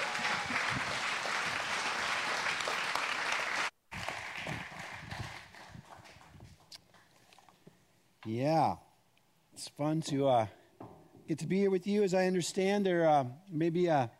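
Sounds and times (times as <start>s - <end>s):
audience applause: 0.0s - 6.7s
speech: 8.3s - 8.8s, 9.6s - 10.6s, 11.3s - 14.1s.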